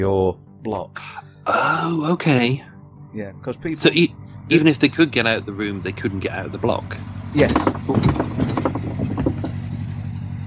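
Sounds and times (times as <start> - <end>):
speech: 0.0 - 8.5
boat engine droning past: 1.4 - 10.4
irregular mechanical clattering and rattling: 7.4 - 10.4.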